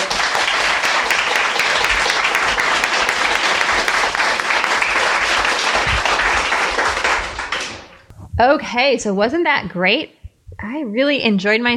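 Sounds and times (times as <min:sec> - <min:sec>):
audience applause after a live interview: 0:00.0 - 0:08.0
speech: 0:08.4 - 0:11.7.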